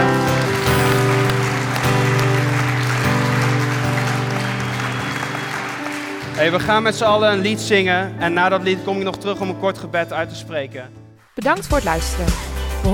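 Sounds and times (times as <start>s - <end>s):
audience clapping: 0.0s - 7.2s
speech: 6.4s - 12.9s.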